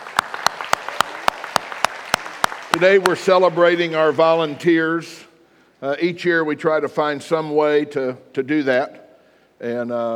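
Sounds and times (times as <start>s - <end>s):
church congregation clapping for its volunteers: 0.0s - 5.0s
speech: 2.8s - 9.0s, 9.6s - 10.1s.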